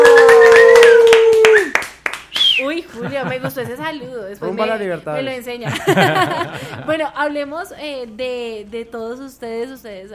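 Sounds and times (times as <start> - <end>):
audience applause welcoming a band: 0.0 - 2.2
laughter: 2.9 - 4.2, 5.6 - 7.0
speech: 3.4 - 10.1.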